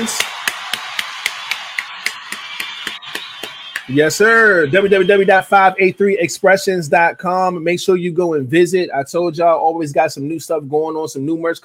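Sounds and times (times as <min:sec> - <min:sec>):
speech: 0:00.0 - 0:00.3, 0:03.9 - 0:11.6
round of applause: 0:00.0 - 0:05.6.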